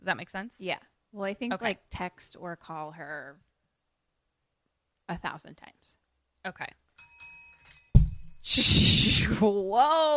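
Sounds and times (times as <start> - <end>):
speech: 0.0 - 3.5, 5.1 - 7.3, 8.4 - 10.1
bell falling off a table: 7.0 - 8.5.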